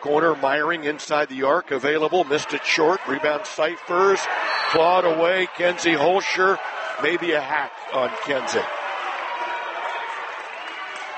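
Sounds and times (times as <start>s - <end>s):
speech: 0.0s - 8.8s
basketball crowd roaring unhappily at a referee's call: 2.2s - 11.1s.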